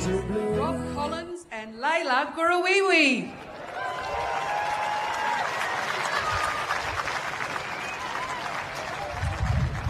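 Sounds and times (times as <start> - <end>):
speech: 0.1 - 4.5
light scattered applause from small crowd: 3.5 - 9.8.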